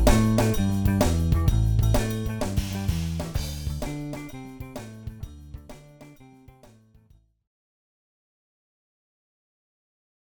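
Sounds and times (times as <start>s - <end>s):
twelve-bar blues jam: 0.0s - 6.4s.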